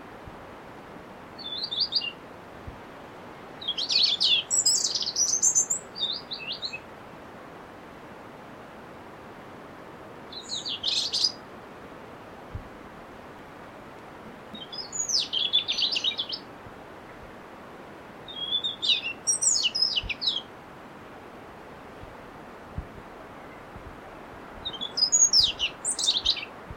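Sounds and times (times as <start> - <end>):
background hiss: 0.0 - 26.7
European robin song: 1.4 - 2.2, 3.6 - 6.9, 10.2 - 11.6, 13.2 - 17.3, 17.9 - 20.6, 22.0 - 26.7.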